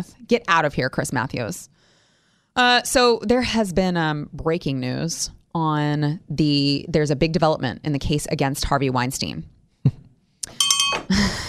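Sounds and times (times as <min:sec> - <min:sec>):
speech: 0:00.0 - 0:01.8, 0:02.6 - 0:11.4
bell sound effect: 0:10.4 - 0:11.4.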